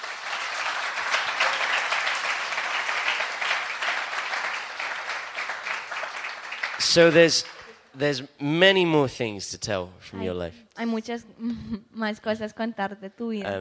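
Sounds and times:
audience applause: 0.0 - 7.9
speech: 6.9 - 13.5.

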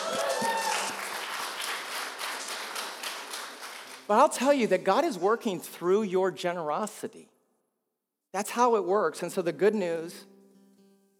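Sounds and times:
audience cheering and whoops: 0.0 - 1.3
audience clapping: 0.0 - 4.8
speech: 4.1 - 7.3, 8.3 - 10.3.

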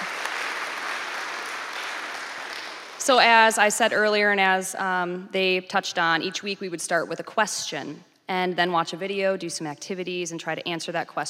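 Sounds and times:
audience applause: 0.0 - 3.0
speech: 3.1 - 11.2.

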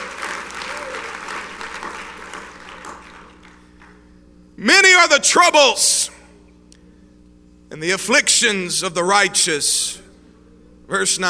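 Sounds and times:
audience clapping hands: 0.0 - 4.1
speech: 4.6 - 6.2, 7.7 - 10.0, 10.9 - 11.2.

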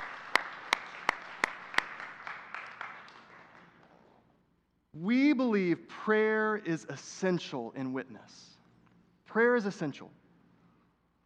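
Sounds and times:
audience applause: 0.0 - 3.9
speech: 5.0 - 8.5, 9.3 - 10.2.

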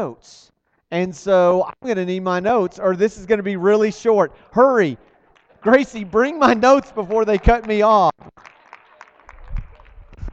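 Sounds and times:
speech: 0.0 - 8.5
audience clapping: 4.8 - 10.3.

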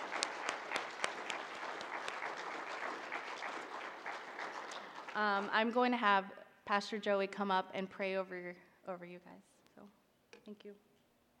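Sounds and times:
audience applause for volunteers: 0.0 - 5.6
speech: 5.2 - 10.9.

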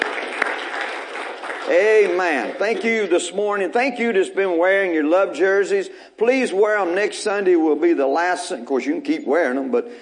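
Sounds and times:
audience hand clapping: 0.0 - 3.6
speech: 1.7 - 9.9.

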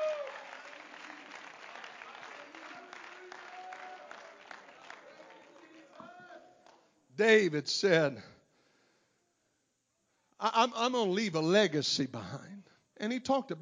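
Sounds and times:
audience clapping hands in praise: 0.0 - 6.9
speech: 7.2 - 8.3, 10.6 - 13.6.

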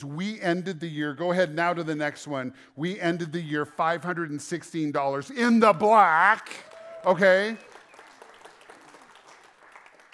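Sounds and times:
speech: 0.0 - 7.7
unenthusiastic audience clapping: 6.4 - 10.1.

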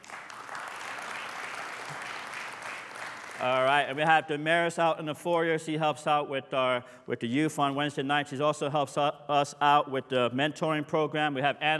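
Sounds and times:
audience hand clapping: 0.0 - 4.2
speech: 3.4 - 11.7.

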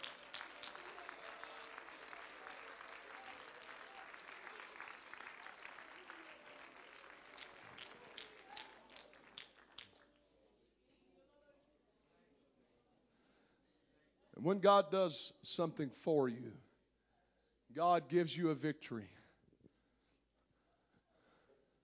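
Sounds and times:
audience clapping hands: 0.0 - 10.2
speech: 14.4 - 16.6, 17.8 - 19.2.

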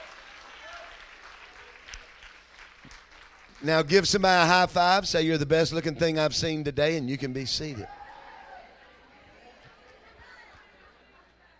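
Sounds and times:
church congregation applauding: 0.0 - 5.8
speech: 3.6 - 8.0.

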